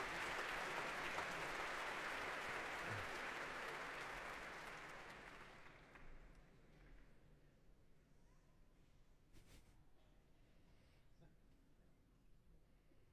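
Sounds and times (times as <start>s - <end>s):
concert hall applause for conductor: 0.0s - 6.5s.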